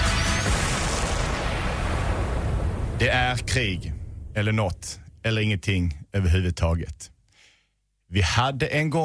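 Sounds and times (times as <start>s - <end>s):
bomb explosion sound effect: 0.2s - 5.2s
speech: 3.0s - 7.1s, 8.1s - 9.0s.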